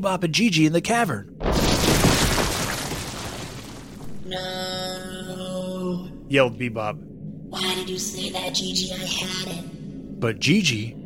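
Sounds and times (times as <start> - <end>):
speech: 0.0 - 1.7, 4.3 - 5.1, 6.3 - 11.0
boulders crashing to the ground: 1.4 - 4.3.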